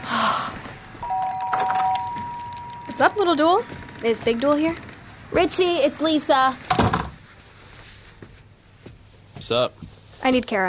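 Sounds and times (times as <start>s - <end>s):
doorbell ringing: 1.0s - 4.2s
speech: 3.0s - 6.6s, 9.5s - 10.6s.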